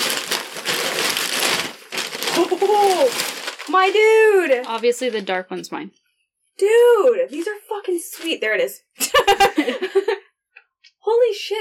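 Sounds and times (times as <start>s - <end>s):
wrapping paper crinkling while unwrapping gift: 0.0s - 5.4s, 7.3s - 8.4s
laughter: 2.4s - 2.9s, 9.0s - 10.2s
speech: 2.4s - 6.0s, 6.6s - 10.3s, 11.0s - 11.6s.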